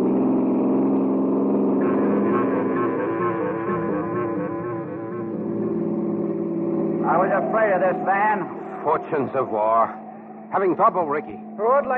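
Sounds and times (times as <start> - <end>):
car engine accelerating: 0.0 - 11.9
speech: 7.4 - 11.9.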